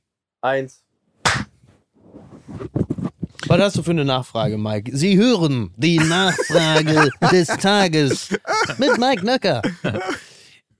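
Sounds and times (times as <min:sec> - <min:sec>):
speech: 0:00.4 - 0:00.9, 0:03.5 - 0:10.2
sharp hand clap: 0:01.2 - 0:01.5
laughter: 0:05.9 - 0:10.3.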